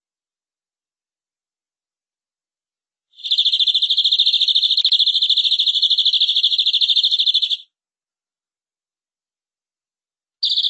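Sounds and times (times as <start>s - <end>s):
canary song trill: 3.2s - 7.7s, 10.4s - 10.6s.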